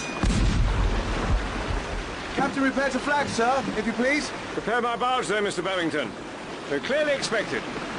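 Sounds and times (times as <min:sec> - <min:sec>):
ship's cannon firing a salute: 0:00.2 - 0:01.5
speech: 0:02.5 - 0:07.8.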